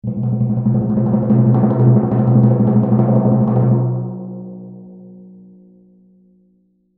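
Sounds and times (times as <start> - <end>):
timpani drum hit: 0.0 - 5.0.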